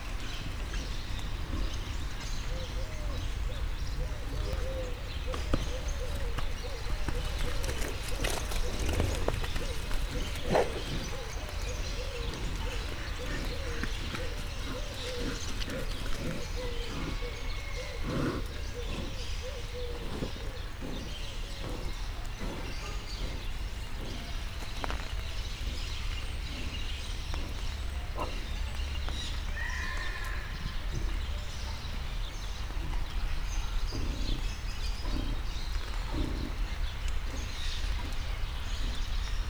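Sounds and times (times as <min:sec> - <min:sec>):
zoo animals panting: 0:00.1 - 0:39.4
zoo animals running around: 0:05.4 - 0:16.6.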